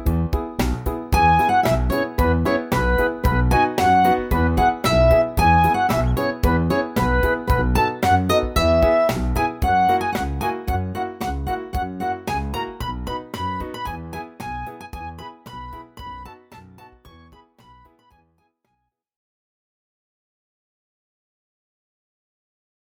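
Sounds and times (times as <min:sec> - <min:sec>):
low backing track: 0:00.0 - 0:17.9.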